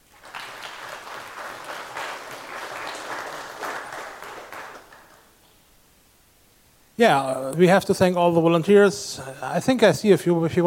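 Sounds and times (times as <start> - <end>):
audience applause: 0.0 - 5.4
speech: 7.0 - 10.6.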